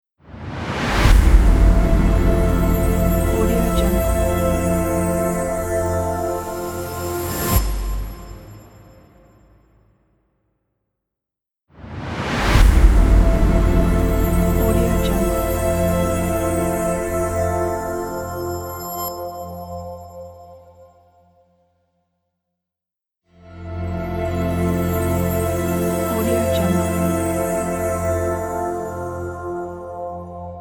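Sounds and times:
atmospheric synth pad logo: 0:01.3 - 0:08.4, 0:12.9 - 0:20.5, 0:23.8 - 0:30.6.

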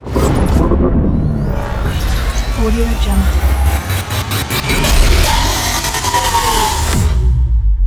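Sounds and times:
logo transform sound effect: 0:00.0 - 0:07.7.

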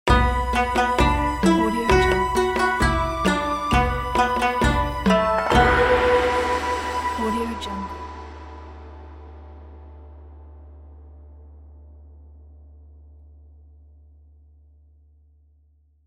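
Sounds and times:
Asian style logo jingle: 0:00.1 - 0:10.8.

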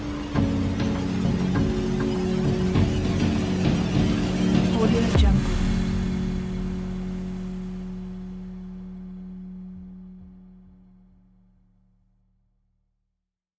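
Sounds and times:
horror mystery music: 0:00.0 - 0:10.7.

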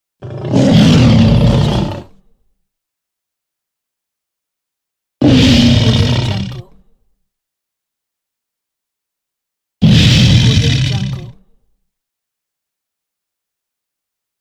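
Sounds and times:
lion roaring: 0:00.2 - 0:02.2, 0:05.2 - 0:06.7, 0:09.8 - 0:11.3.

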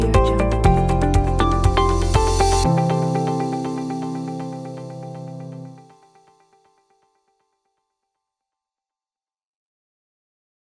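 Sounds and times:
uplifting ambient music: 0:00.0 - 0:06.1.

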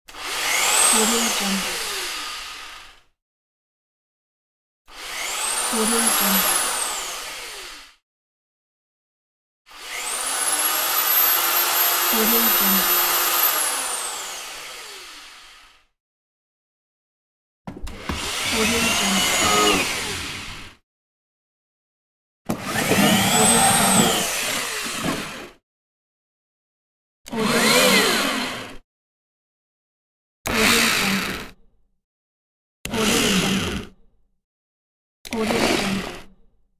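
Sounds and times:
electric drill: 0:00.1 - 0:03.0, 0:04.9 - 0:08.0, 0:09.7 - 0:15.9, 0:17.9 - 0:20.8, 0:22.5 - 0:25.6, 0:27.3 - 0:28.8, 0:30.5 - 0:31.6, 0:32.9 - 0:33.9, 0:35.3 - 0:36.3.

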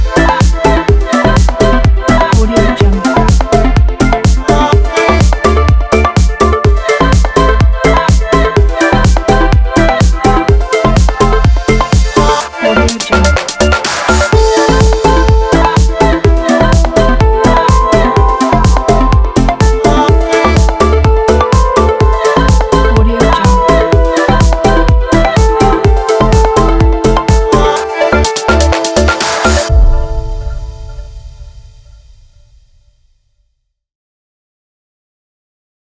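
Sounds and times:
deep house background music: 0:00.0 - 0:31.1.

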